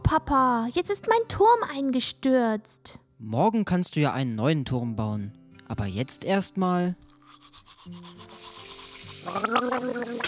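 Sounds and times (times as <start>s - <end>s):
speech: 0.1s - 8.3s, 9.2s - 10.2s
teeth being brushed with a toothbrush at bedtime: 7.0s - 10.2s.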